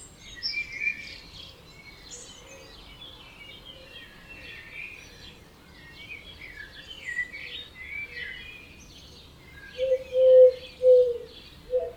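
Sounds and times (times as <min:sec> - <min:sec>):
birds chirping and warbling at dawn: 0:00.0 - 0:11.9
loud low hoots: 0:09.8 - 0:11.9.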